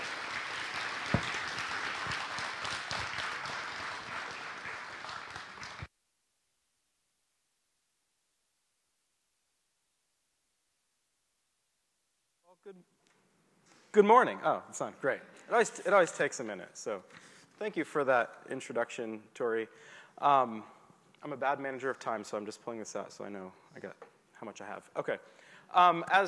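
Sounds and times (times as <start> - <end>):
church congregation clapping to welcome a pastor: 0.0 - 5.9
speech: 12.6 - 12.9, 14.0 - 26.2.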